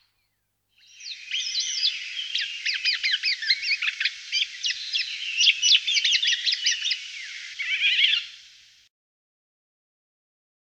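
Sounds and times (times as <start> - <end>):
golden oriole voice: 0.8 - 8.8.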